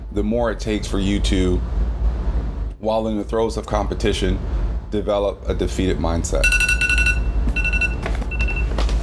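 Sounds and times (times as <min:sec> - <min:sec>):
speech: 0:00.2 - 0:01.8, 0:02.8 - 0:06.7
mobile phone going off: 0:06.4 - 0:08.8.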